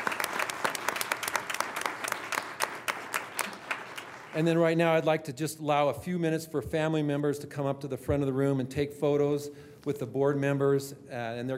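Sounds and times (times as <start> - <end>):
audience applauding artistic students at a board meeting: 0.0 - 4.8
speech: 4.4 - 11.5.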